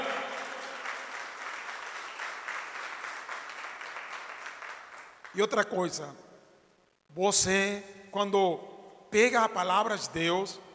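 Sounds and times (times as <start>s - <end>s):
crowd applauding: 0.0s - 5.5s
speech: 5.4s - 6.3s, 7.2s - 10.7s.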